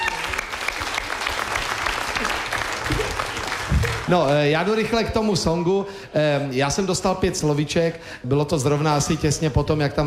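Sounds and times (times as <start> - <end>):
audience applause: 0.0 - 4.9
speech: 4.1 - 10.0.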